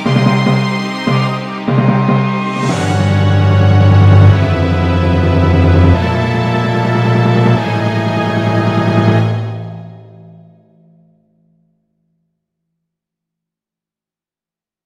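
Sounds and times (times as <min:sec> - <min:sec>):
quest battle music: 0:00.0 - 0:10.2.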